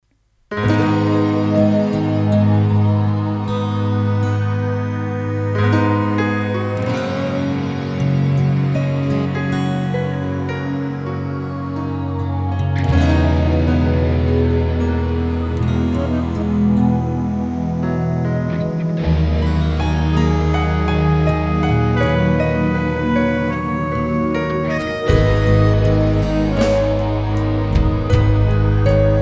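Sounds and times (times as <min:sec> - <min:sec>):
dreamy piano music: 0:00.5 - 0:29.2.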